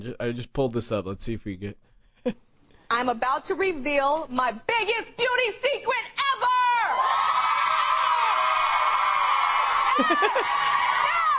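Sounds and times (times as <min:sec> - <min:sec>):
speech: 0:00.0 - 0:06.5, 0:10.0 - 0:10.8
studio audience applauding: 0:07.0 - 0:11.3
laughter: 0:09.9 - 0:11.3.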